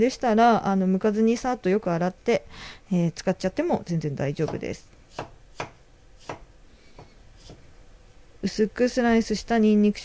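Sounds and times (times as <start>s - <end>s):
speech: 0.0s - 5.7s, 8.4s - 10.0s
knife on a cutting board cutting peeled ginger into thin strips: 4.4s - 7.6s.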